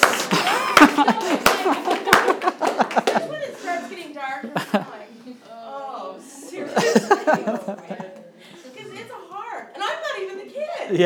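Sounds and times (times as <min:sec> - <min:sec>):
slow clap: 0:00.0 - 0:03.3
laughter: 0:00.2 - 0:05.0, 0:06.6 - 0:08.3.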